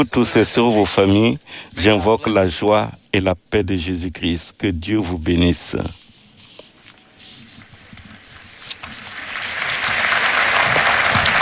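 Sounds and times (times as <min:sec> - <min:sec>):
speech: 0:00.0 - 0:06.0
pilgrims applauding: 0:09.0 - 0:11.4.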